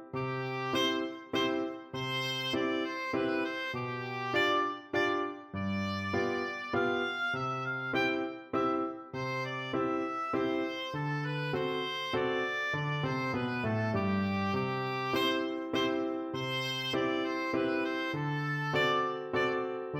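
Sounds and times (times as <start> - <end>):
oboe: 0.2 - 19.9.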